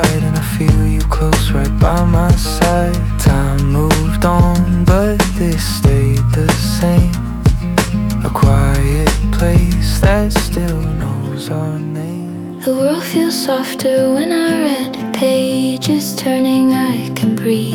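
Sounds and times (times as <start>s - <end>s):
acoustic indie music: 0.0s - 17.7s.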